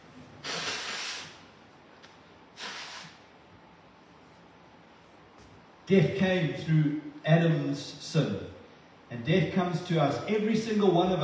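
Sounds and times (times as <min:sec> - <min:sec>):
person blowing their nose: 0:00.4 - 0:01.4, 0:02.5 - 0:03.2
speech: 0:05.9 - 0:08.5, 0:09.1 - 0:11.2.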